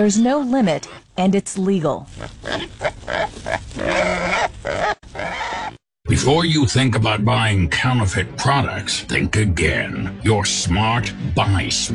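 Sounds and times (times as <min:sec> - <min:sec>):
speech: 0:00.0 - 0:05.3, 0:06.1 - 0:11.9
wild hog grunting: 0:02.1 - 0:05.8.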